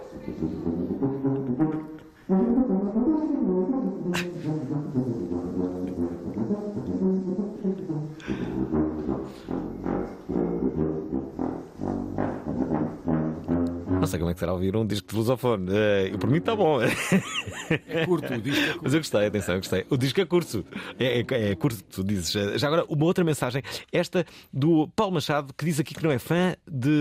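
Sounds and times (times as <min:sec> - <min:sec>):
instrument playing a melody: 0:00.0 - 0:14.7, 0:15.7 - 0:22.4
laughter: 0:04.1 - 0:04.6, 0:16.6 - 0:21.5
speech: 0:14.1 - 0:26.9.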